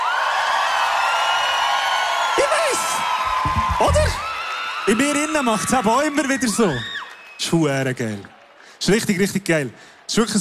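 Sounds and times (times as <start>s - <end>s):
audience applause and cheering for band: 0.0s - 7.4s
speech: 4.9s - 10.3s.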